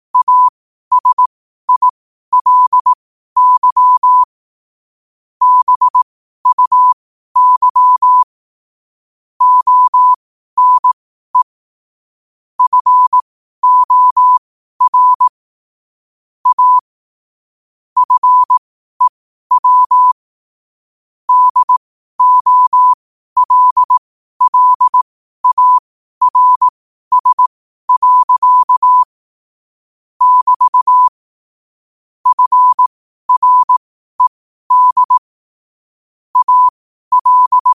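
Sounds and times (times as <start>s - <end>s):
morse code at 5 wpm: 0.2s - 4.3s, 5.4s - 8.3s, 9.4s - 11.5s, 12.6s - 15.3s, 16.4s - 16.9s, 18.0s - 20.2s, 21.3s - 29.1s, 30.2s - 31.2s, 32.2s - 35.3s, 36.4s - 37.7s.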